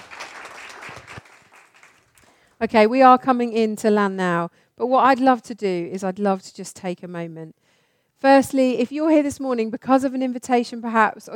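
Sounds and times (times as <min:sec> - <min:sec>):
audience cheering and applause: 0:00.0 - 0:02.2
speech: 0:02.6 - 0:07.6, 0:08.2 - 0:11.3.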